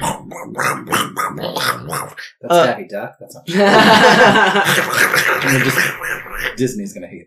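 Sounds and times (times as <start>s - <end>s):
voice imitating chewing and growling: 0.0s - 2.8s, 4.6s - 6.6s
speech: 0.3s - 7.2s
laughter: 3.5s - 6.6s.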